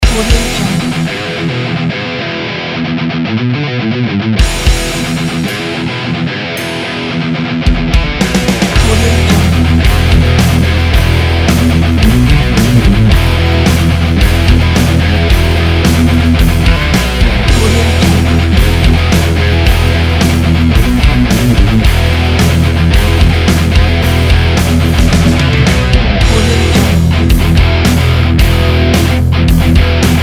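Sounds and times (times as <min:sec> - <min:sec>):
racing rock music: 0:00.0 - 0:30.2.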